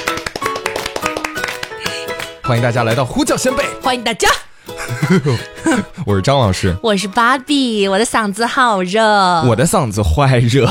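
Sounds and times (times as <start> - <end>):
hand clapping: 0.0 - 3.6
speech: 2.5 - 10.6
laughter: 4.8 - 6.2.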